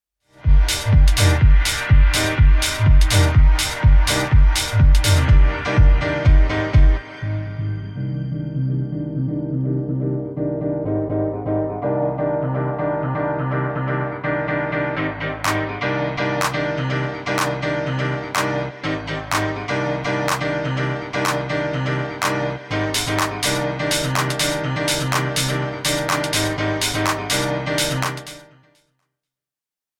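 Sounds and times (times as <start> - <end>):
piano instrumental: 0.4 - 28.7.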